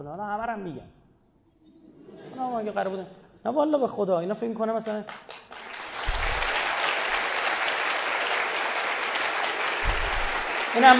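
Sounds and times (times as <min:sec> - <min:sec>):
speech: 0:00.0 - 0:01.0, 0:02.4 - 0:05.5, 0:10.8 - 0:10.9
audience applause during a Persian-language speech: 0:05.5 - 0:10.9.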